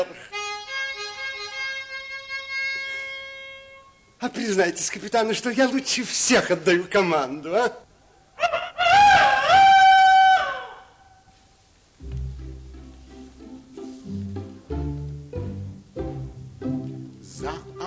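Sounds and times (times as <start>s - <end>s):
speech: 4.2s - 7.8s
rooster crowing: 8.4s - 11.2s.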